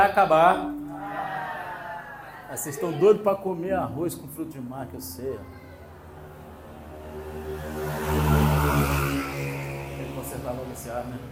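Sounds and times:
speech: 0.0 - 0.8, 2.5 - 5.6, 10.4 - 11.3
motorcycles passing outside: 5.1 - 11.3.

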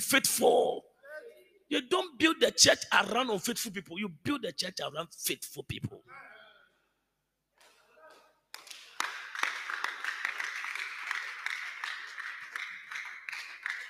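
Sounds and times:
speech: 0.0 - 0.9, 1.7 - 6.4
man clapping: 8.5 - 13.8.

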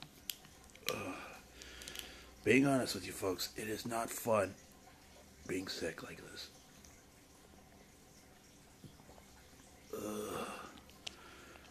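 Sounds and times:
swig of water being drunk: 0.3 - 2.4, 8.8 - 11.6
speech: 2.4 - 4.6, 5.5 - 6.6, 10.0 - 10.6.

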